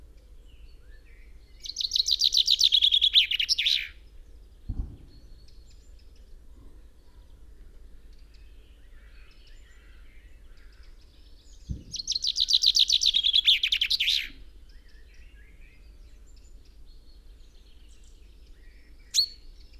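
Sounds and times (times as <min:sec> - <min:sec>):
Common chaffinch Fringilla coelebs singing: 0:01.6 - 0:04.0, 0:11.6 - 0:14.4, 0:19.0 - 0:19.7.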